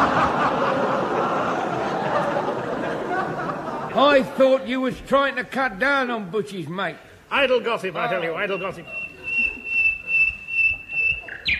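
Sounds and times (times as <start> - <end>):
laughter: 0.0 - 5.1, 8.0 - 11.5
speech: 4.0 - 9.0
English bird in full-throated song: 8.2 - 11.5.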